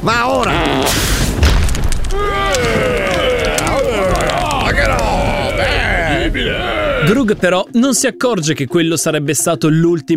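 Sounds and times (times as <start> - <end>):
speech: 0.0 - 1.0, 6.3 - 10.1
lightning strike: 0.4 - 6.4.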